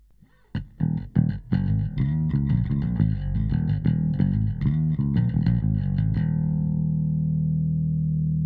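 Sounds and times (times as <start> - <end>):
bass harmonics: 0.0 - 8.4.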